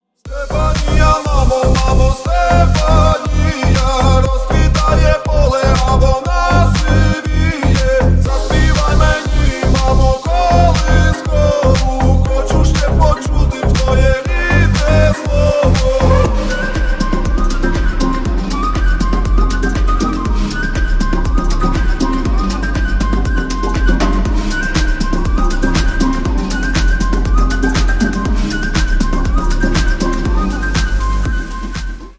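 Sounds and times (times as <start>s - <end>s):
slap house remix: 0.3s - 32.1s.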